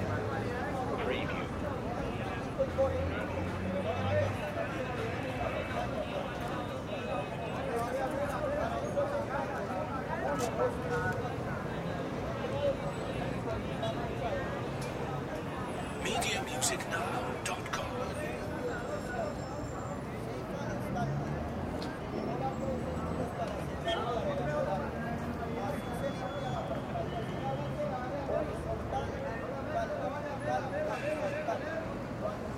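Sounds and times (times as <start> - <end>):
city ambience in Bogota: 0.0 - 32.5.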